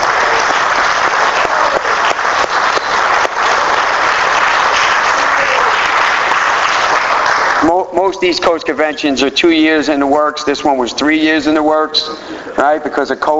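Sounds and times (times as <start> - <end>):
audience applause: 0.0 - 7.9
speech: 8.1 - 13.3.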